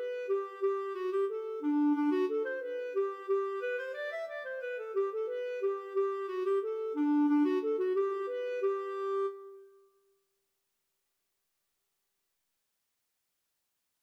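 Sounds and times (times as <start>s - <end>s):
polkett music: 0.0s - 9.7s.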